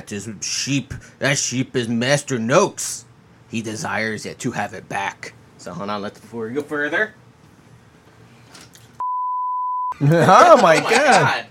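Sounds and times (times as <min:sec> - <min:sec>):
speech: 0:00.0 - 0:07.2, 0:10.0 - 0:11.5
censor bleep: 0:09.0 - 0:10.0
laughter: 0:10.0 - 0:11.4.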